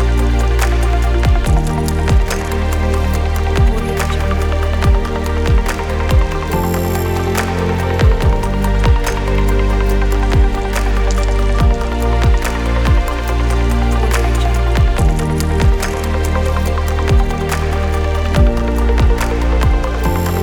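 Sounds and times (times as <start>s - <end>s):
abstract documentary background music: 0.0s - 20.4s.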